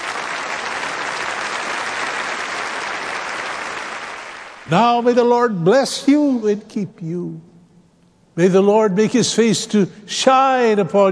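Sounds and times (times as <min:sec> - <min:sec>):
audience applause at a gathering: 0:00.0 - 0:04.7
speech: 0:04.7 - 0:07.5, 0:08.4 - 0:11.1.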